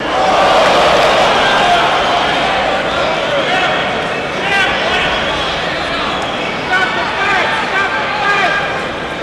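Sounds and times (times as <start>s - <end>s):
crowd in a big arena shouting high-pitched: 0.0s - 9.1s.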